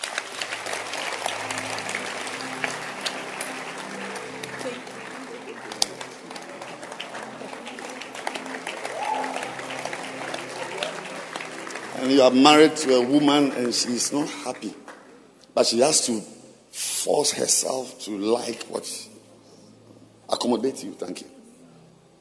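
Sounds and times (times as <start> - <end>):
audience clapping: 0.0 - 15.2
low murmur of voices: 0.0 - 22.2
speech: 12.1 - 14.8, 15.6 - 19.1, 20.3 - 21.4.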